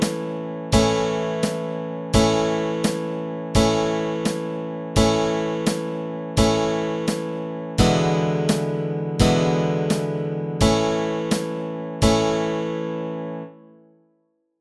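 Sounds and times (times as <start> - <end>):
guitar and ukulele chords: 0.0 - 12.8.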